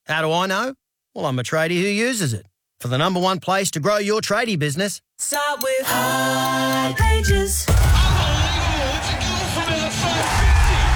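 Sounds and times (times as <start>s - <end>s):
speech: 0.1s - 8.0s, 9.7s - 10.6s
stadium crowd roaring and cheering: 7.8s - 10.9s.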